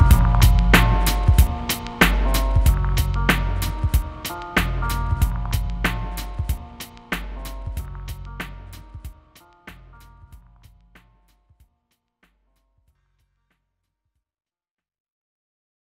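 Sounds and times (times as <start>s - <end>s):
instrumental music: 0.0s - 12.0s.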